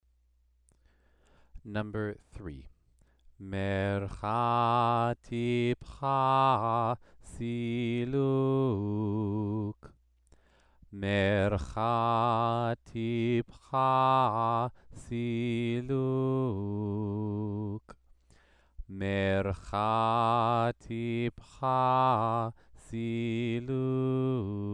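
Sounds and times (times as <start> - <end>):
Torah trope cantillation exercise: 3.4 - 9.7, 11.0 - 17.8, 18.9 - 24.7.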